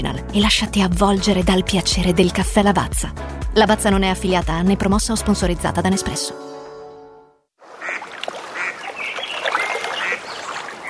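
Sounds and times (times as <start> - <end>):
speech: 0.0 - 6.5
lake ambience: 7.6 - 10.8
ducks: 7.7 - 10.8.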